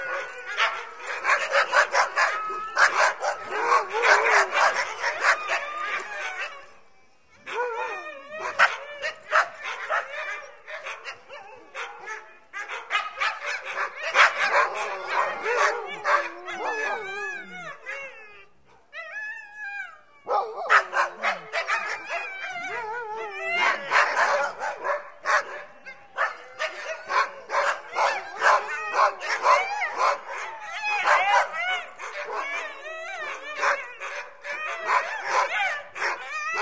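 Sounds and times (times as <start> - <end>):
dogs barking: 0.0 - 6.7, 8.4 - 17.6, 20.3 - 22.8, 23.4 - 36.6.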